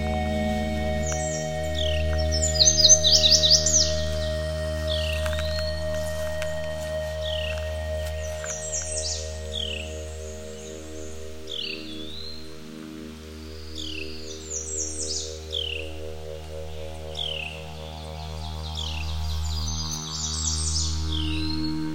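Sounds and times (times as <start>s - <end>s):
steady low hum: 0.0s - 13.0s
woodland birds chirping and trilling: 0.0s - 21.9s.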